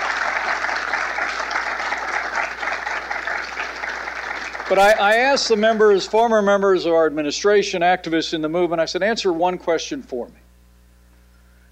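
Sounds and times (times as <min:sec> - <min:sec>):
audience applause: 0:00.0 - 0:06.1
speech: 0:04.7 - 0:10.4.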